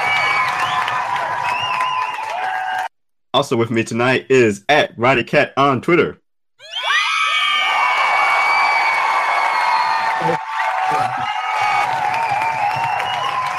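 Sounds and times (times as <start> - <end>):
crowd applauding and cheering: 0.0 - 2.9, 6.8 - 13.5
speech: 3.3 - 6.7, 10.2 - 11.2.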